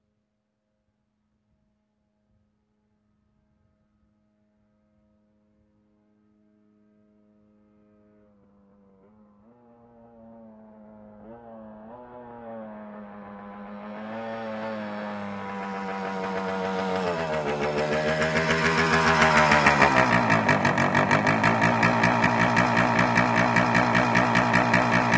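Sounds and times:
motorcycle approaching and turning off: 8.3s - 25.1s.

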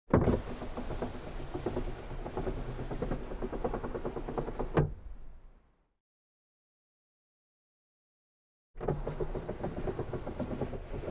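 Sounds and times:
car glass window lowered and raised manually: 0.1s - 5.3s, 8.8s - 11.0s.

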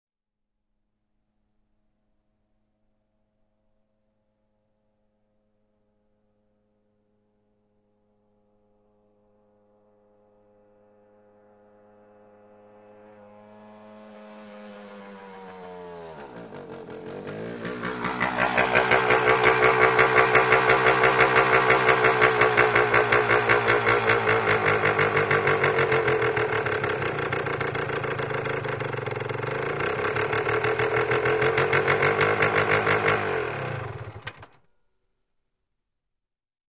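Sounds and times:
motorcycle approaching and turning off: 10.6s - 34.6s.

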